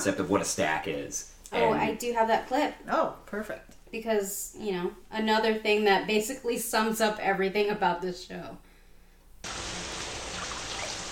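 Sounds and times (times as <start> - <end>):
speech: 0.0 - 8.6
shower water running: 9.4 - 11.1.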